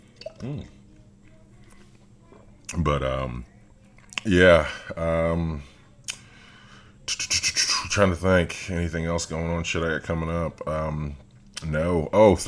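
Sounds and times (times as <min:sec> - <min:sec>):
gulping and swallowing water: 0:00.2 - 0:00.8
speech: 0:00.4 - 0:00.8, 0:02.7 - 0:03.5, 0:04.2 - 0:05.7, 0:07.9 - 0:12.4.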